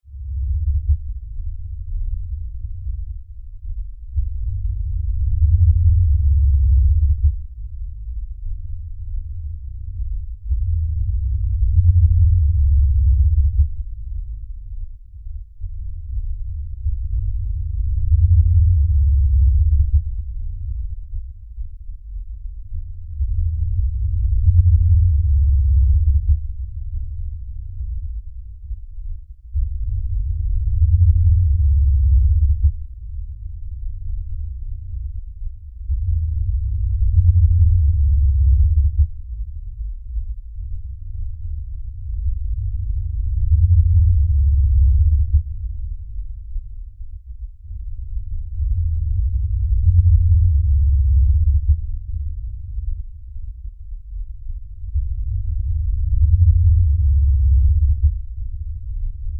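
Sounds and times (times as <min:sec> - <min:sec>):
LFE low bass rumble drone: 0:00.0 - 0:59.3.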